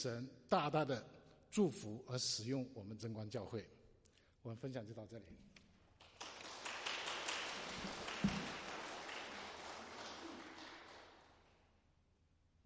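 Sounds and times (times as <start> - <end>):
speech: 0.0 - 3.8, 4.4 - 5.6
audience applause: 6.0 - 11.6.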